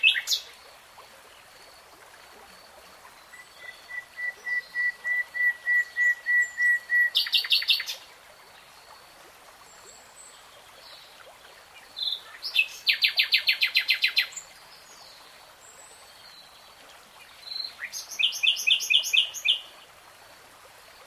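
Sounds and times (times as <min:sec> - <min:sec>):
nightingale song: 0:00.0 - 0:00.7, 0:03.0 - 0:08.1, 0:09.8 - 0:19.8.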